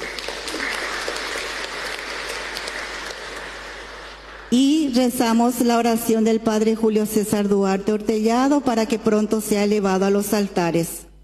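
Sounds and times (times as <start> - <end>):
audience applause: 0.0 - 4.5
speech: 4.5 - 11.0.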